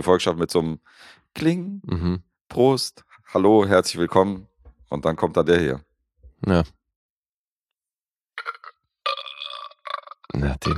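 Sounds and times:
speech: 0.0 - 6.8, 10.4 - 10.7
burp sound effect: 8.4 - 10.7.

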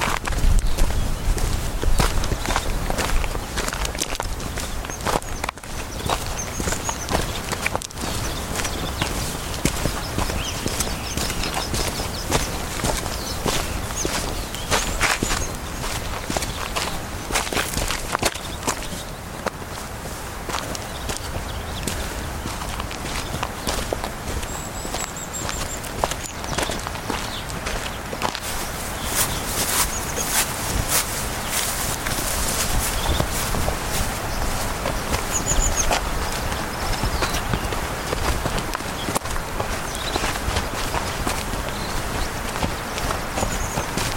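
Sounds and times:
birds chirping: 0.0 - 44.1
footsteps on soft forest ground and crunching pebbles on a hiking walk in the Allgäu: 0.0 - 44.1.

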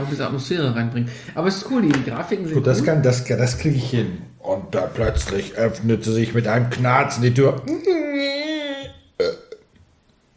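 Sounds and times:
speech: 0.1 - 8.3
cartoonish rat burp sound effect: 8.2 - 9.8.

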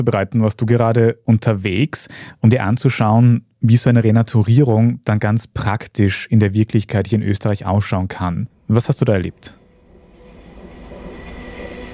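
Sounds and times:
speech: 0.0 - 9.6
faint high whine: 8.4 - 11.9
train ride from Vienna toward Bad Deutsch-Altenburg: 9.4 - 11.9.

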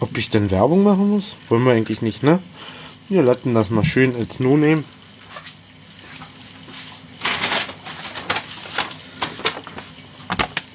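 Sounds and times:
speech: 0.0 - 5.0
rustling crinkly bag: 6.2 - 10.7.

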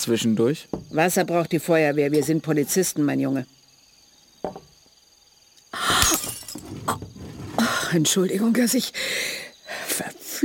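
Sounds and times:
speech: 0.0 - 3.6, 6.9 - 10.4
drinking glass falling and shattering: 5.8 - 7.1.

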